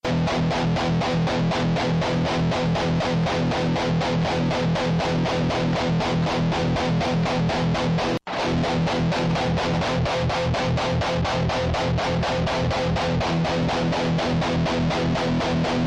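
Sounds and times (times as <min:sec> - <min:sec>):
rhythm guitar playing with inconsistent muting: 0:00.0 - 0:15.8.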